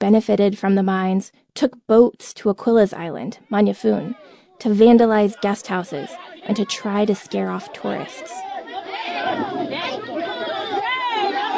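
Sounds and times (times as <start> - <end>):
speech: 0.0 - 9.8
crowd shouting: 5.1 - 11.5.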